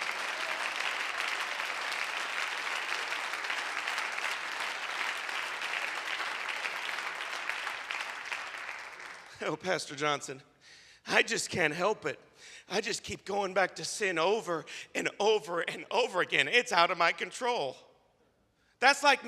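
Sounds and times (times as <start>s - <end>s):
audience clapping: 0.0s - 9.6s
speech: 9.4s - 17.9s, 18.8s - 19.2s.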